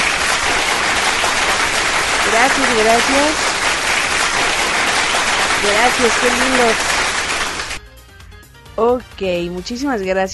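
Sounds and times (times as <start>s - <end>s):
applause: 0.0s - 7.8s
speech: 2.4s - 3.5s, 5.6s - 6.9s, 8.8s - 10.3s.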